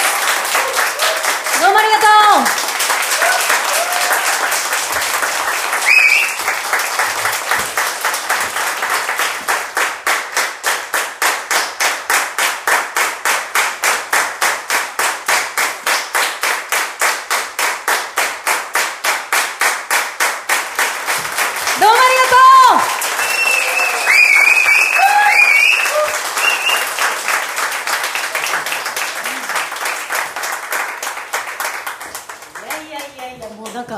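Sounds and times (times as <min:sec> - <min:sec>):
audience clapping in a unified rhythm: 0:00.0 - 0:33.9
crowd whooping and voices: 0:00.4 - 0:01.5, 0:03.1 - 0:04.6, 0:05.8 - 0:06.4, 0:22.3 - 0:27.0
speech: 0:01.8 - 0:02.6.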